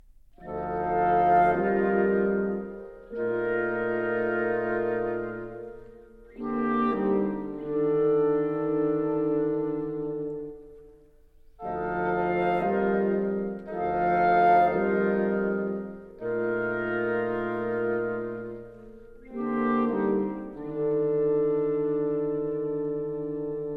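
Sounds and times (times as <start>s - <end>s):
woodwind quintet playing a partita interlude: 0.0s - 23.7s.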